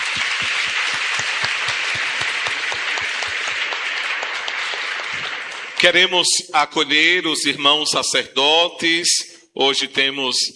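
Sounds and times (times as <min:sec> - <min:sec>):
crowd applauding: 0:00.0 - 0:06.3
speech: 0:05.8 - 0:10.5.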